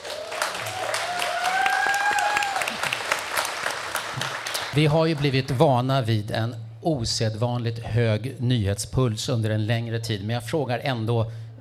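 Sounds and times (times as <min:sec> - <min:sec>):
crowd applause: 0:00.0 - 0:05.5
speech: 0:04.8 - 0:11.4.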